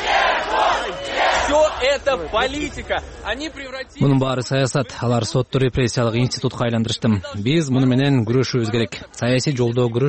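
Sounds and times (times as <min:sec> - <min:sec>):
supporters outside a courthouse shouting the name of a defendant: 0:00.0 - 0:02.1
speech: 0:01.9 - 0:10.0.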